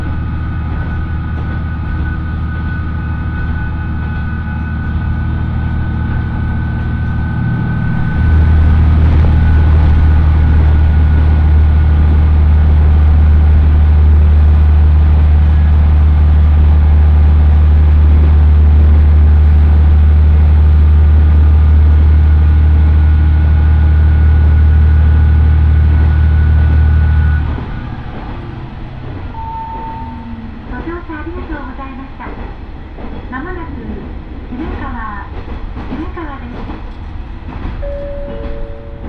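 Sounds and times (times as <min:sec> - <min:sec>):
Ōito Line train engine drone: 0:00.0 - 0:39.0.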